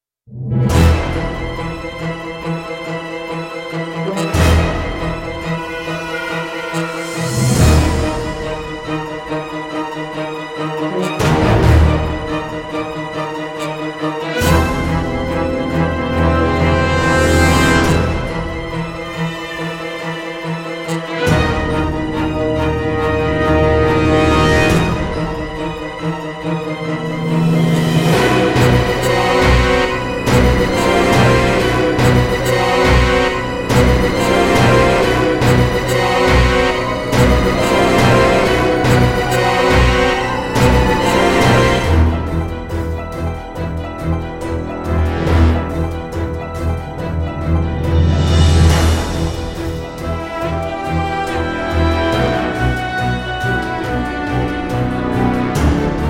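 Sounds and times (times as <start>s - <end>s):
horror chase music: 0.3s - 56.0s.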